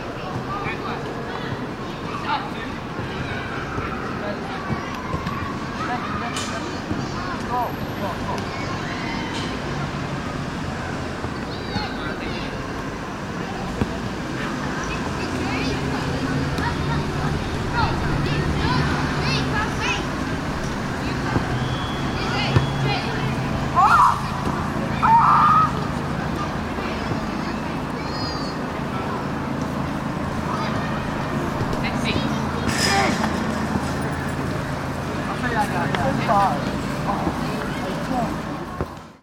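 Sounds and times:
soccer matches played in an enclosed park area in London: 0.0s - 39.2s.

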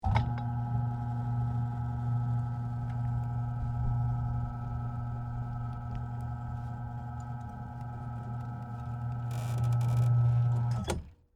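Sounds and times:
electric gate opening: 0.0s - 11.0s.

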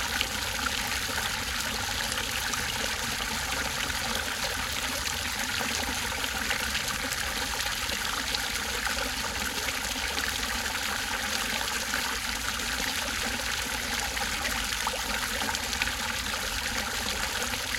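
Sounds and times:
large water fountain flowing and bubbling in recreation park gardens: 0.0s - 17.7s.

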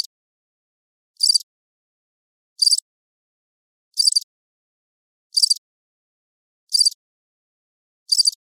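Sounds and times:
cricket chirping: 1.2s - 1.4s, 2.6s - 2.8s, 4.0s - 4.2s, 5.4s - 5.6s, 6.7s - 7.0s, 8.1s - 8.4s.

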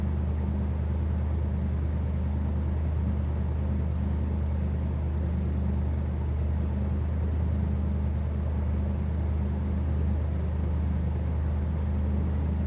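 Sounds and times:
airboat running slow heard on board: 0.0s - 12.6s.

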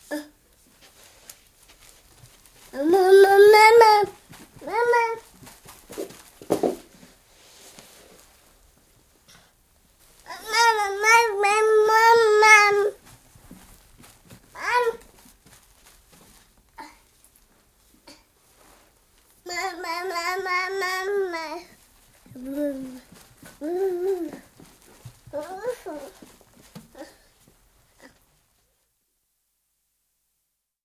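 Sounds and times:
12 month old baby boy running around: 0.8s - 7.4s, 10.1s - 17.2s, 19.4s - 28.4s
12 month old baby boy saying Mama: 2.8s - 5.2s, 10.3s - 13.0s, 14.6s - 15.1s, 19.5s - 24.4s, 25.3s - 26.2s.

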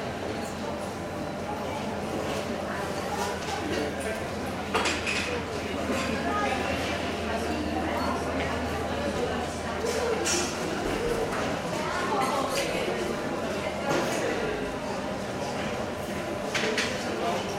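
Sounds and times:
small airport terminal ambience with check-in and cafe in La Rochelle: 0.0s - 17.5s.

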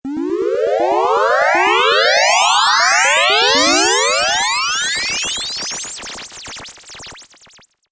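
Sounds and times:
video game teleport warp effect: 0.1s - 4.8s.

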